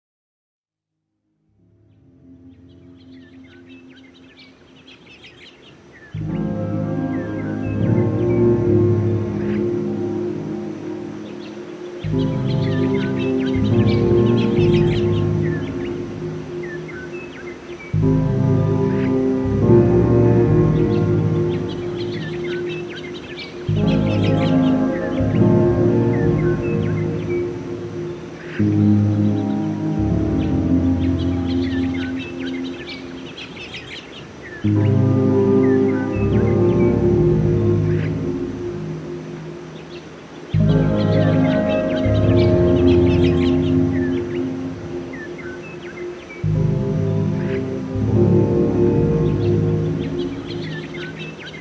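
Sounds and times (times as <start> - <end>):
ambience: 1.5 - 51.6.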